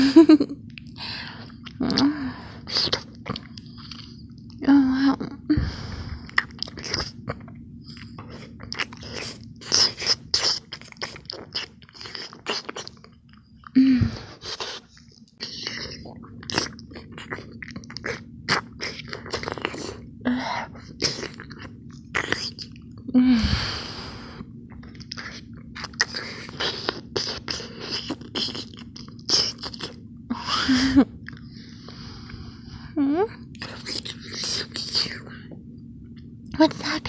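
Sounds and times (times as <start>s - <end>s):
low hum: 0.0s - 37.0s
crunchy biting and chewing of food tasting like a cupcake: 2.7s - 4.6s, 6.2s - 20.1s, 20.7s - 23.1s, 24.7s - 30.0s, 33.5s - 35.5s.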